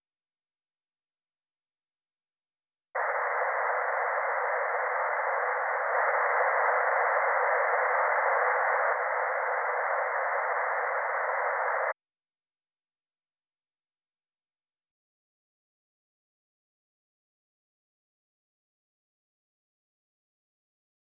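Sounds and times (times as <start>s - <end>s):
surround sound speaker balance test sound: 3.0s - 12.0s.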